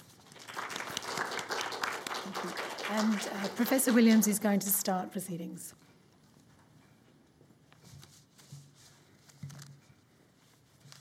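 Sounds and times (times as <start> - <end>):
audience applause welcoming two speakers to a discussion: 0.2 - 4.4
speech: 2.4 - 5.8.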